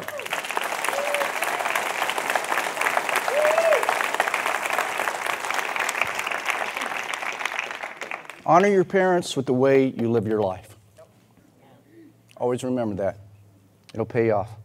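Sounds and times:
faint cheers: 0.0s - 1.9s, 3.2s - 4.1s
audience round of applause: 0.0s - 8.4s
speech: 8.5s - 10.7s, 12.5s - 13.2s, 13.9s - 14.6s.

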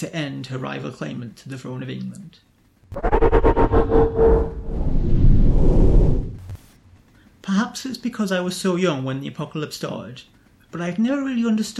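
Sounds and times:
speech: 0.0s - 6.2s, 7.4s - 11.7s
rapid pulsing mechanical whir with steady hum: 2.9s - 6.5s.

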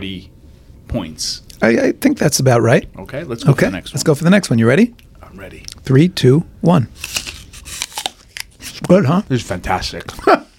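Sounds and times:
speech: 0.0s - 7.3s, 8.9s - 10.5s
person biting and chewing an apple: 7.0s - 9.0s
laughter: 10.1s - 10.5s.

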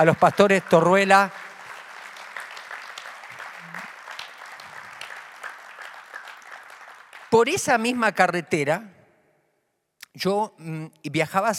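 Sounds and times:
speech: 0.0s - 1.4s, 7.3s - 9.0s, 10.2s - 11.5s
audience applause: 0.0s - 7.5s.

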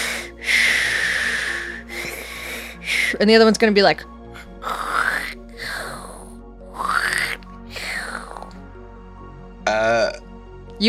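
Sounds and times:
voice imitating wet heavy breathing: 0.0s - 3.2s, 4.3s - 8.6s
speech: 3.1s - 4.8s.

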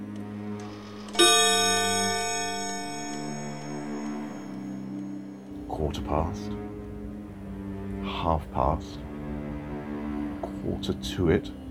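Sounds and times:
low humming drone: 0.0s - 11.7s
clock bell chiming: 1.2s - 6.3s
speech: 5.8s - 6.7s, 8.2s - 9.1s, 10.6s - 11.6s.

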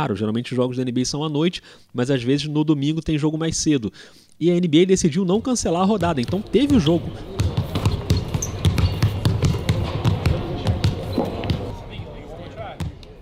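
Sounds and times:
speech: 0.0s - 7.4s
basketballs bouncing during warm-up: 5.4s - 13.1s
shoe squeaks: 5.7s - 12.0s
busy murmur of voices: 6.3s - 13.1s.

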